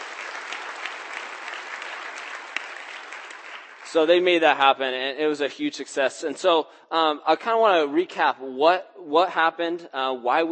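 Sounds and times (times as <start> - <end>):
audience applause: 0.0 - 4.1
speech: 3.9 - 10.5.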